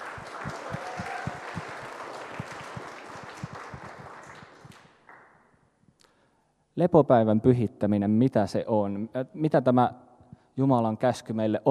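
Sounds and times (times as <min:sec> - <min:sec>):
audience applause: 0:00.0 - 0:05.2
speech: 0:06.8 - 0:10.0, 0:10.6 - 0:11.6.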